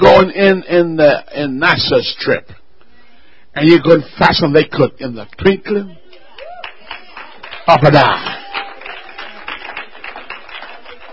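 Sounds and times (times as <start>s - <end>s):
speech: 0.0s - 2.6s, 3.6s - 6.0s, 7.7s - 8.4s
audience clapping: 6.1s - 11.1s.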